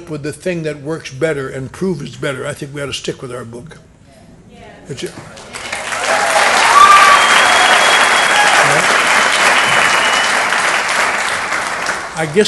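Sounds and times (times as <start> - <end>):
speech: 0.0 - 3.9, 4.9 - 5.5, 12.2 - 12.4
audience applause: 5.4 - 12.4.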